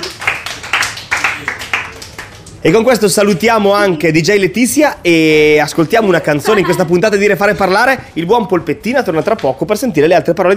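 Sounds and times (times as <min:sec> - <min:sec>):
applause: 0:00.0 - 0:02.6
speech: 0:02.6 - 0:10.5.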